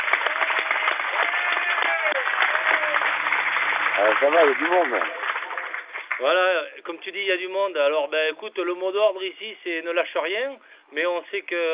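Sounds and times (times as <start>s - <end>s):
group applauding: 0.0s - 6.6s
speech: 4.0s - 5.2s, 6.2s - 11.7s.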